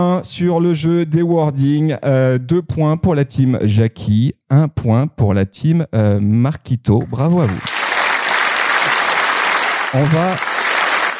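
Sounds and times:
speech: 0:00.0 - 0:07.8, 0:09.9 - 0:10.5
canned studio audience applause effect on a French game show: 0:07.3 - 0:11.1.

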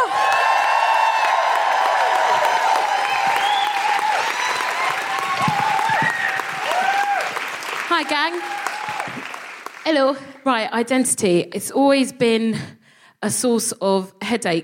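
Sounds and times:
audience applauding a guest welcomed onto a stage: 0:00.0 - 0:09.9
speech: 0:08.0 - 0:08.5, 0:09.8 - 0:14.6.

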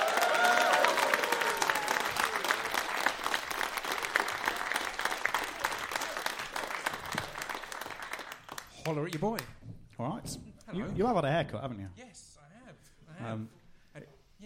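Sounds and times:
audience cheering: 0:00.0 - 0:08.2
audience applause: 0:00.0 - 0:09.4
speech: 0:08.9 - 0:12.3, 0:13.2 - 0:13.6.

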